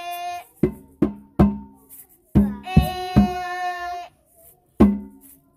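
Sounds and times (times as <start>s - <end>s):
music: 0.5s - 3.3s, 4.8s - 5.5s.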